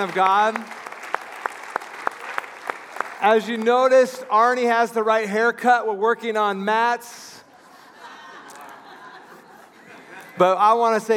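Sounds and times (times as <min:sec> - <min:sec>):
speech: 0:00.0 - 0:00.8, 0:03.2 - 0:07.3, 0:10.4 - 0:11.1
audience applauding: 0:00.0 - 0:04.0
laughter: 0:07.4 - 0:10.8.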